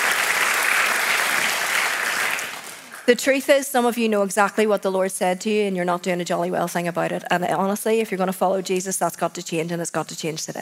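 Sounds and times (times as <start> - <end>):
audience applause: 0.0 - 3.1
speech: 3.1 - 10.5.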